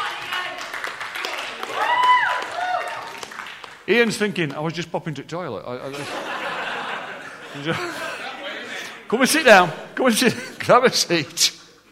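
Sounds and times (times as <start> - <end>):
audience cheering: 0.0 - 3.7
applause: 0.0 - 3.9
speech: 3.9 - 6.3, 7.6 - 8.1, 9.1 - 11.6
laughter: 5.8 - 9.1.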